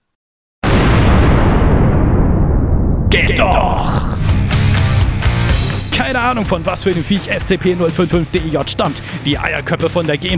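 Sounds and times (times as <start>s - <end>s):
explosion: 0.6s - 8.4s
speech: 6.2s - 10.3s.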